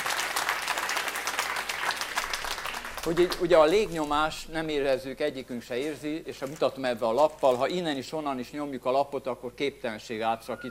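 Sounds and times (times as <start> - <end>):
audience applause during a science demonstration: 0.0 - 4.4
speech: 3.0 - 10.6.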